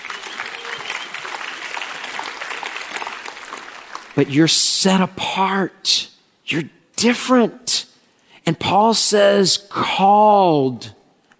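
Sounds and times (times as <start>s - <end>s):
faint cheering: 0.0s - 2.9s
crowd applause: 0.0s - 4.2s
speech: 4.2s - 7.9s, 8.5s - 11.0s.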